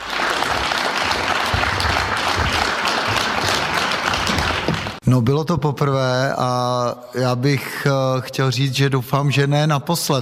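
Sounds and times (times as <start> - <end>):
big applause from a large crowd: 0.0 - 5.0
speech: 5.1 - 10.2.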